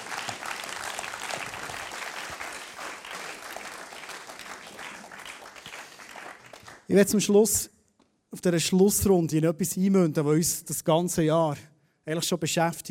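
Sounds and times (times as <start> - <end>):
audience applause: 0.0 - 6.9
speech: 6.9 - 7.7, 8.4 - 12.8.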